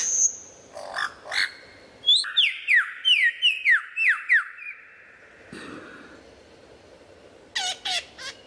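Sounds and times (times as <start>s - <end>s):
lyrebird song with whistles, sliding notes and trills: 0.0s - 5.6s, 7.1s - 8.4s.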